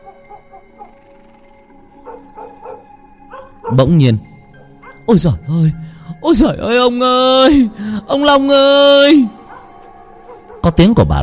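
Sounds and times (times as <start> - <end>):
dog barking frantically: 0.0 - 1.0, 2.1 - 3.9, 9.4 - 10.7
speech: 3.7 - 4.3, 5.1 - 9.4, 10.7 - 11.2.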